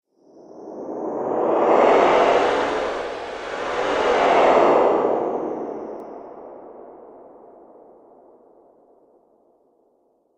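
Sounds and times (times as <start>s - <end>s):
slow zoom in and out whoosh: 1.5s - 6.0s.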